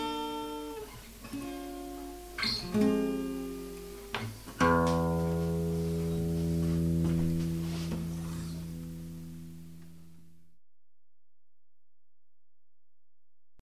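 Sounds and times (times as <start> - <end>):
acoustic guitar rambling: 0.0 - 10.6.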